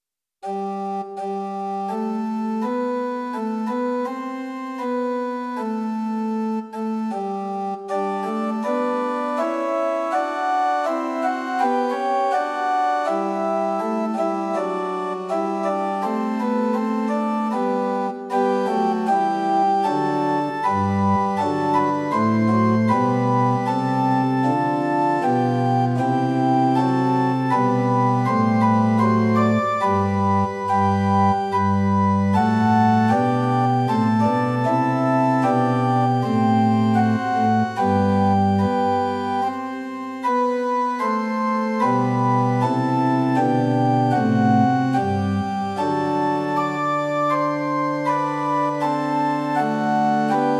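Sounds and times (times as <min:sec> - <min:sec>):
liturgical organ at pitch 440 in equal temperament: 0:00.5 - 0:50.5.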